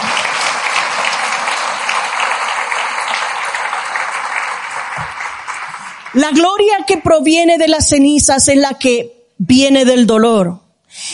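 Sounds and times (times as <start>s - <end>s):
loud audience applause: 0.0s - 6.7s
speech: 6.2s - 11.1s.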